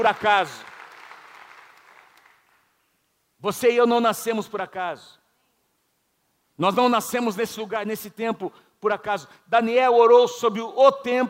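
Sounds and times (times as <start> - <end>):
speech: 0.0 - 0.7, 3.4 - 5.2, 6.6 - 11.2
audience applause: 0.0 - 2.7.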